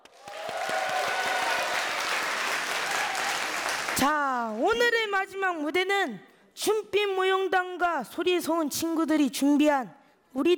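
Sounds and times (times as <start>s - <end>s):
audience applause: 0.0s - 4.1s
speech: 4.0s - 10.5s.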